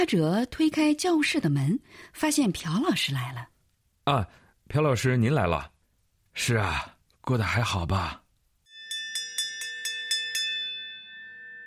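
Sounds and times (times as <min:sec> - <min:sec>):
speech: 0:00.0 - 0:05.7, 0:06.4 - 0:08.2
school bell ringing for morning staff meeting: 0:08.7 - 0:11.6.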